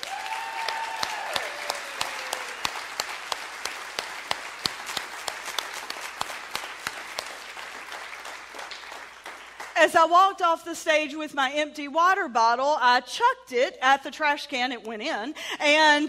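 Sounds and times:
audience applause: 0.0 - 9.8
speech: 9.8 - 16.0.

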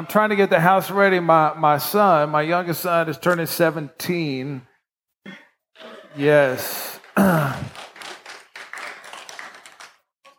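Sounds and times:
speech: 0.0 - 5.4, 6.2 - 7.8
audience clapping: 6.3 - 10.3.

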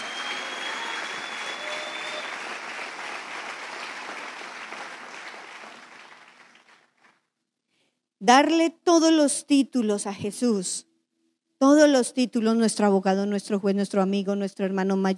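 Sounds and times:
applause: 0.0 - 7.4
speech: 8.2 - 10.9, 11.6 - 15.1.

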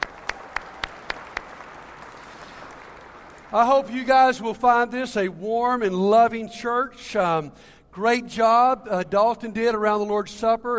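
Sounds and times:
church congregation clapping to welcome college students back: 0.0 - 4.4
speech: 3.5 - 10.7.

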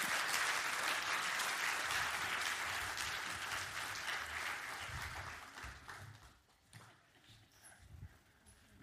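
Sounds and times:
audience hand clapping: 0.0 - 7.0.

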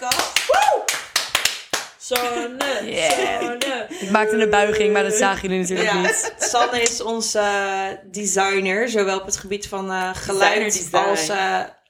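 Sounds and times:
applause, hands clapping: 0.0 - 3.8
speech: 2.1 - 11.8
laughter: 2.2 - 7.2.

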